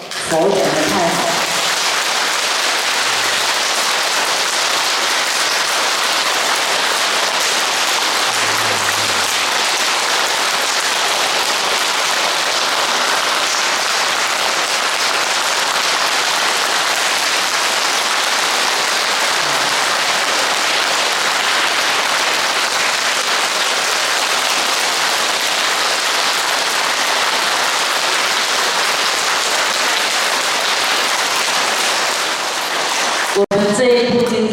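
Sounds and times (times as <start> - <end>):
audience clapping hands: 0.0 - 34.4
speech: 0.3 - 1.4.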